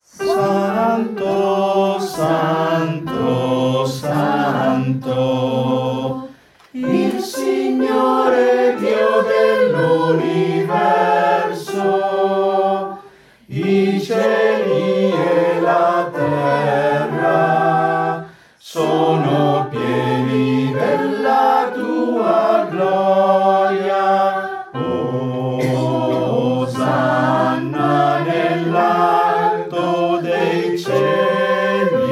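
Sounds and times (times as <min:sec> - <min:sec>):
men and sopranos singing: 0:00.0 - 0:32.0.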